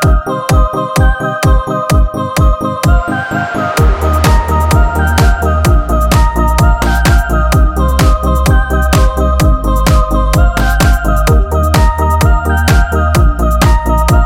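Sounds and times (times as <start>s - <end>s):
simple upbeat positive corporate background music: 0.0s - 14.2s.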